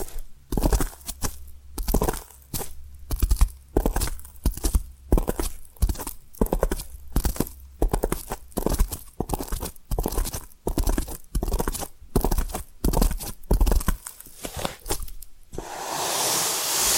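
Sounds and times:
tapping and scratching: 0:00.0 - 0:15.4
low steady hum: 0:00.0 - 0:16.0
rising hiss: 0:15.6 - 0:16.9.

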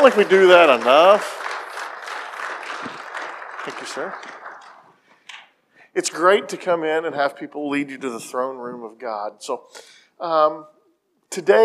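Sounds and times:
speech: 0:00.0 - 0:01.4, 0:03.6 - 0:04.4, 0:06.0 - 0:11.6
audience applause: 0:00.0 - 0:05.0.

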